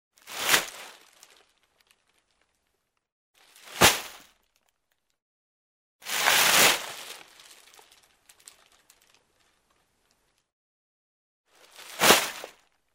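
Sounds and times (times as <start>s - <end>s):
trash bag lifted and thrown: 0.2s - 1.4s, 3.4s - 4.3s, 6.1s - 7.8s, 11.6s - 12.6s.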